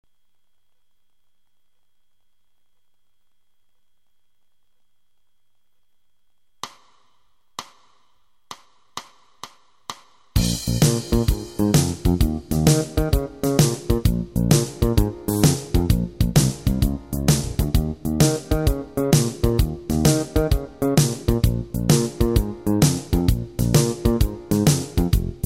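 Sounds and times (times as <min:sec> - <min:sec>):
blues shuffle backing track in B flat: 0:08.5 - 0:25.4.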